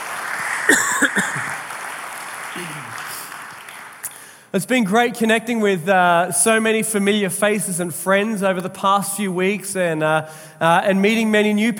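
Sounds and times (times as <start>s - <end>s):
audience applauding: 0.0s - 4.4s
speech: 4.5s - 11.7s.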